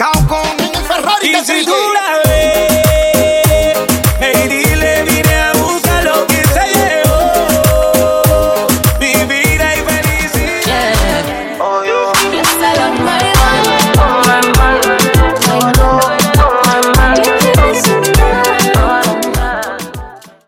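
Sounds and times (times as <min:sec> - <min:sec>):
reggaeton moombah beat at 100 BPM: 0:00.0 - 0:20.4.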